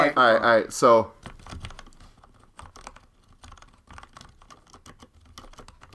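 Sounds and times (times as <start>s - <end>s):
speech: 0.0s - 1.6s
typing on a mechanical keyboard with a deep thocky sound: 1.2s - 5.9s.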